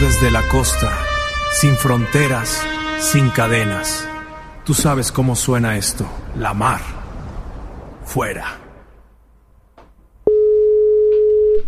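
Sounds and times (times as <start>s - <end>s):
speech: 0.0s - 4.1s, 4.7s - 7.0s, 8.1s - 8.6s
telephone line ringing during outgoing call: 10.3s - 11.6s.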